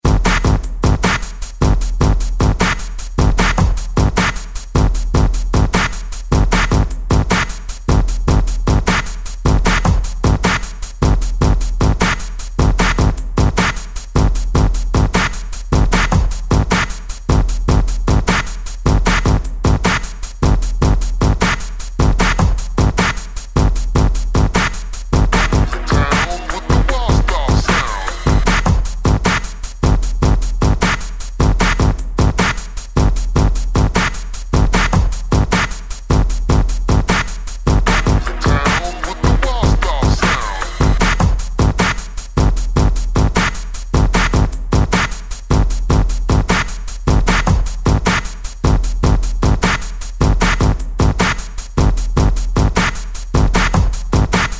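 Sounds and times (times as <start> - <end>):
beats: 0.0 - 54.5.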